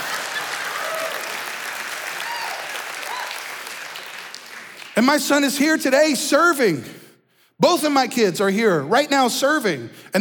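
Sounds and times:
audience clapping: 0.0 - 5.3
speech: 5.0 - 7.0, 7.6 - 10.1.

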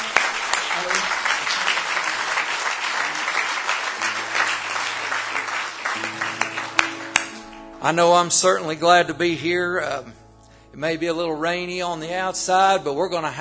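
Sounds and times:
audience clapping hands in praise: 0.0 - 8.0
speech: 7.8 - 10.2, 10.8 - 13.3.

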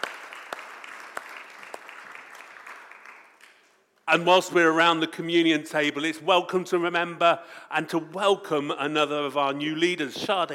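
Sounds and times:
church congregation clapping: 0.0 - 4.2
speech: 4.1 - 10.5.

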